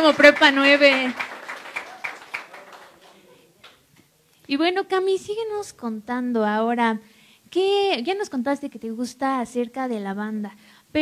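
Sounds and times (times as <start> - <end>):
speech: 0.0 - 1.3, 4.5 - 11.0
audience applause: 0.0 - 3.8.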